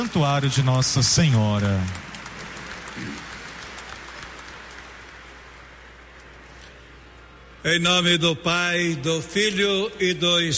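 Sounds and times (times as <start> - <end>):
speech: 0.0 - 2.1, 7.6 - 10.5
audience applause: 0.0 - 5.9.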